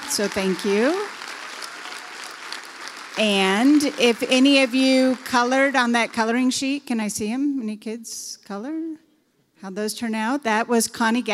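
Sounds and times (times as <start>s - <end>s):
audience applause: 0.0s - 5.5s
speech: 0.1s - 1.2s, 3.2s - 9.0s, 9.6s - 11.3s.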